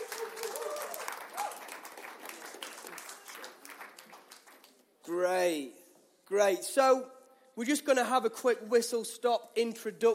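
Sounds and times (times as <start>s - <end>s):
audience clapping: 0.0s - 4.9s
speech: 5.1s - 10.1s.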